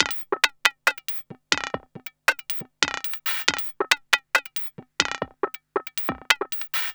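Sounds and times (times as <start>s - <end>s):
electronic percussion: 0.0s - 6.9s.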